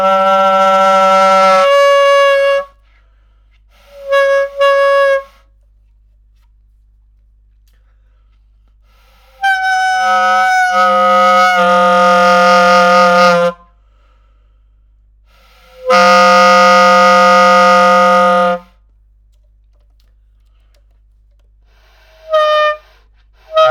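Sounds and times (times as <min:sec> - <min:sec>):
bass clarinet: 0:00.0 - 0:02.8, 0:03.8 - 0:05.4, 0:09.0 - 0:13.7, 0:15.4 - 0:18.8, 0:21.8 - 0:23.6.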